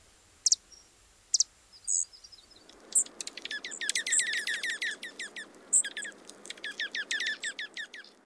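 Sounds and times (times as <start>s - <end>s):
steady hiss: 0.0s - 6.5s
junco ticking calls: 0.4s - 8.0s.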